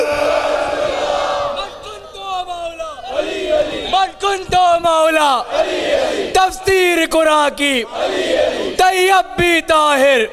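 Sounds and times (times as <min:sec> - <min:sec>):
crowd shouting a religious slogan in unison: 0:00.0 - 0:10.3
speech: 0:04.3 - 0:10.3.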